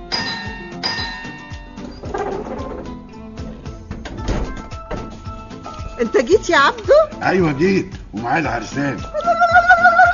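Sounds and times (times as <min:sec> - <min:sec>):
doorbell ringing: 0:00.0 - 0:02.2
speech: 0:06.0 - 0:09.4.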